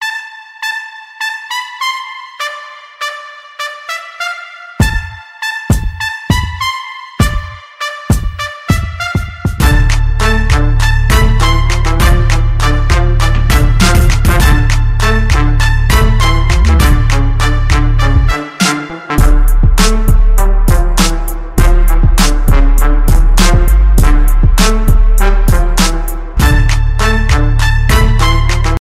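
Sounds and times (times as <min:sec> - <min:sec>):
march music: 0:00.0 - 0:28.7.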